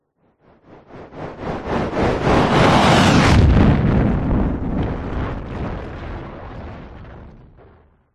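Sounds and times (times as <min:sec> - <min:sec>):
science fiction UFO spacecraft on fire flying by: 0:00.8 - 0:03.6
science fiction spacecraft explosion: 0:01.4 - 0:08.1.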